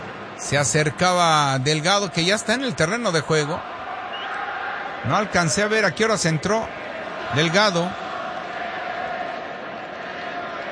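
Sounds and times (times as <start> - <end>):
speech: 0.4 - 3.7, 5.0 - 8.0
large stadium crowd chanting a song in unison: 3.6 - 5.1, 6.6 - 10.7.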